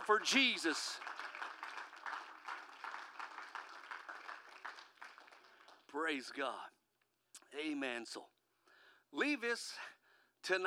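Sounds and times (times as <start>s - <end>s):
audience hand clapping: 0.0s - 6.0s
speech: 0.1s - 1.1s, 5.9s - 6.8s, 7.5s - 8.3s, 9.1s - 10.6s.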